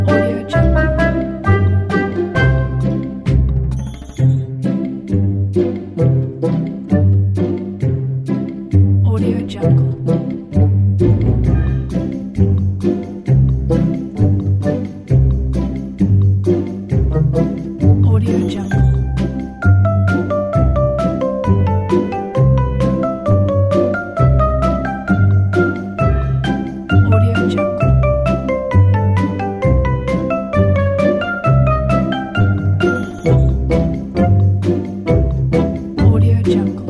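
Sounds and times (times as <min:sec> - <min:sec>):
funny cartoon pizzicato: 0:00.0 - 0:36.8.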